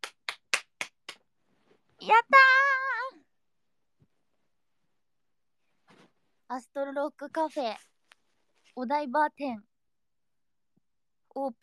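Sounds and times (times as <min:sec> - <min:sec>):
hand clapping: 0:00.0 - 0:01.3
speech: 0:02.0 - 0:02.6, 0:06.5 - 0:07.9, 0:08.8 - 0:09.7, 0:11.4 - 0:11.6.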